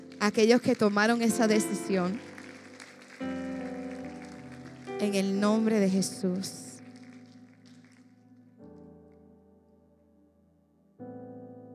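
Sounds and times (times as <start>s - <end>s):
audience applause: 0.0s - 8.1s
speech: 0.2s - 2.3s, 5.0s - 6.7s.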